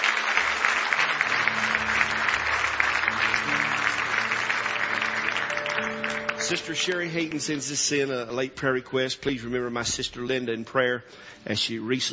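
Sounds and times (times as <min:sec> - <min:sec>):
audience clapping hands in praise: 0:00.0 - 0:08.0
speech: 0:06.5 - 0:12.1.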